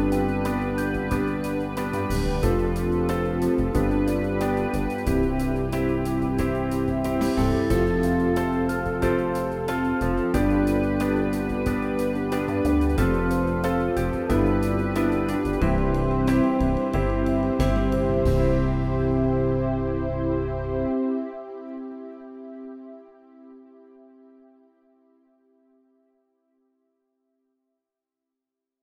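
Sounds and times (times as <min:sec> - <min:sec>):
backing track: 0:00.0 - 0:20.9.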